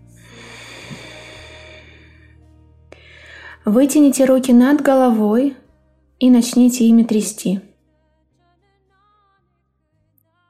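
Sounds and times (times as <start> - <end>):
slow deep breathing during a meditation exercise: 0.0 - 3.7
speech: 3.6 - 5.6, 6.2 - 7.7.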